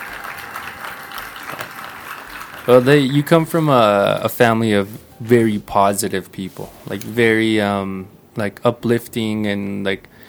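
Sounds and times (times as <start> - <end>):
applause: 0.0 - 3.4
speech: 2.6 - 10.2.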